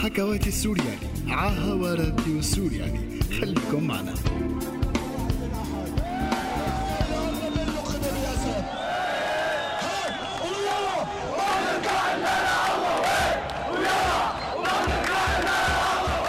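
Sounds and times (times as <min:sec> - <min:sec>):
speech: 0:00.1 - 0:04.7
large crowd chanting and shouting: 0:05.1 - 0:16.2.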